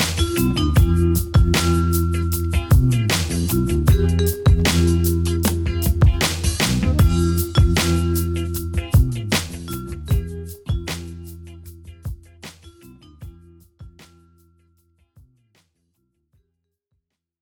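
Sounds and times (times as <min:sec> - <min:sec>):
jazzy waves: 0:00.0 - 0:11.5.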